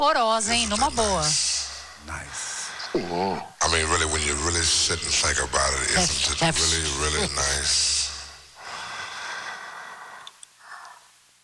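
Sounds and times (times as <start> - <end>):
speech: 0.0 - 2.4, 3.0 - 8.0
heavy breathing and snorting: 2.9 - 3.6.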